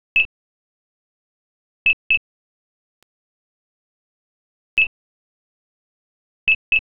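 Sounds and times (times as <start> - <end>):
buzzer: 1.9 - 2.2, 4.8 - 5.0, 6.5 - 6.8.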